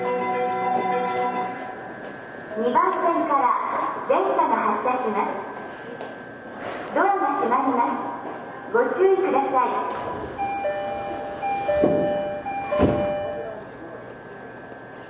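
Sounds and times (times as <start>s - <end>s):
Tokyo Waterfront Area Rapid Transit 70-000 series train running hum: 0.0s - 15.0s
speech onboard Tokyo Waterfront Area Rapid Transit 70-000 series train: 2.5s - 6.2s, 6.9s - 10.0s.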